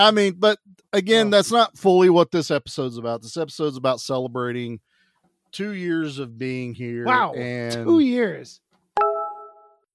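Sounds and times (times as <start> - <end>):
speech: 0.0 - 4.9, 5.5 - 9.1
phone message notification chime: 9.0 - 9.8.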